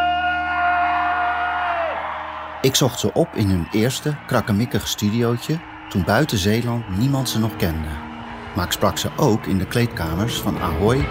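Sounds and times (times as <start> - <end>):
crowd applause: 0.4 - 11.0
speech: 2.6 - 11.0.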